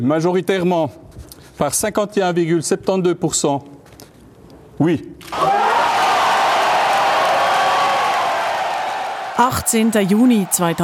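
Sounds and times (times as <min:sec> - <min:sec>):
speech: 0:00.0 - 0:03.8, 0:04.8 - 0:05.5, 0:09.4 - 0:10.8
whoops: 0:05.3 - 0:09.2
large crowd cheering and shouting: 0:05.3 - 0:10.8.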